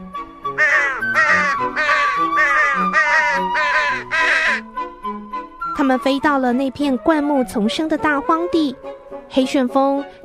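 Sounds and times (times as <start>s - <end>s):
flock of crows cawing: 0.6s - 4.7s
speech: 5.9s - 10.2s.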